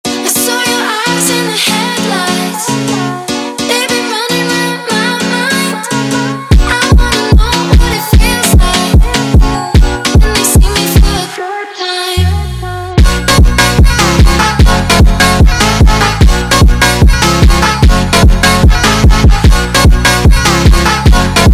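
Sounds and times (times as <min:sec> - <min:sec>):
sped up montagem music: 0:00.1 - 0:21.5.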